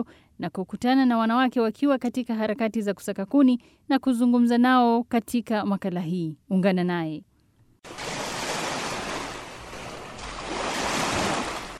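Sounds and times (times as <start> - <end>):
speech: 0.0 - 8.1
waves washing onto the shore of Lake Albert at Sebagoro, Uganda: 7.9 - 11.7.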